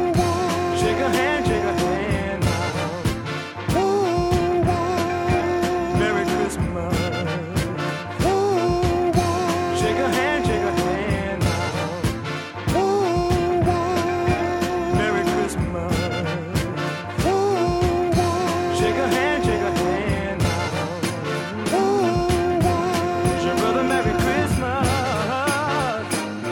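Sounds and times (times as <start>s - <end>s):
alto voice singing: 0.0s - 26.4s.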